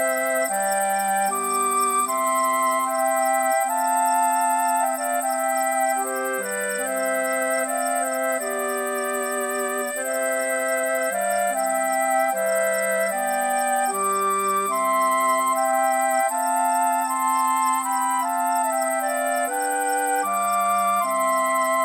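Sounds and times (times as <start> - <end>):
music: 0.0 - 21.8
songbirds singing at twilight: 0.0 - 21.8.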